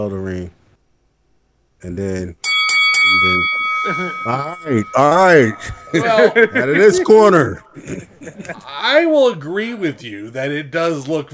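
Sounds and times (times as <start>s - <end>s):
speech: 0.0s - 0.6s, 1.8s - 11.3s
boxing round bell ringing: 2.4s - 7.7s
laughter: 3.9s - 9.2s.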